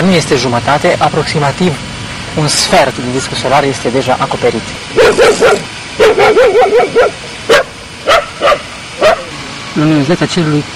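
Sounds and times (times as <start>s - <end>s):
speech: 0.0s - 8.6s, 9.8s - 10.7s
agitated dogs barking and yipping in a park: 4.8s - 9.4s.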